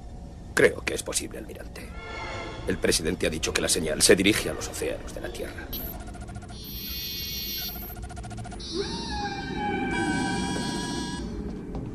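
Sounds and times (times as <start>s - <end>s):
speech: 0.6s - 6.0s
gray whale song: 6.6s - 11.5s.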